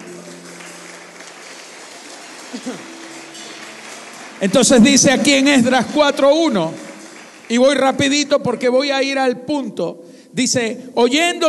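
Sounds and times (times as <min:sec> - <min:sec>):
audience applause: 0:00.0 - 0:08.3
speech: 0:02.5 - 0:03.0, 0:04.4 - 0:06.8, 0:07.5 - 0:11.4.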